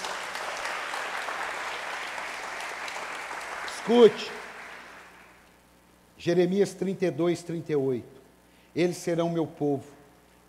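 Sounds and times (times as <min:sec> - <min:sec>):
audience applause: 0:00.0 - 0:05.4
speech: 0:03.9 - 0:04.4, 0:06.2 - 0:08.2, 0:08.8 - 0:10.0.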